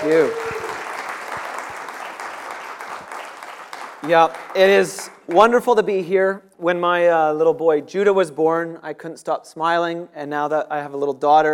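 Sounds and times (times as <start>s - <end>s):
speech: 0.0s - 0.6s, 4.0s - 11.5s
audience applause welcoming a guest speaker: 0.0s - 5.5s.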